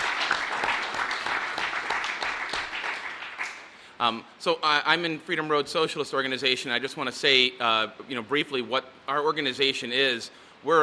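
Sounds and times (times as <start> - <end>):
audience applause: 0.0 - 3.7
speech: 4.0 - 10.8.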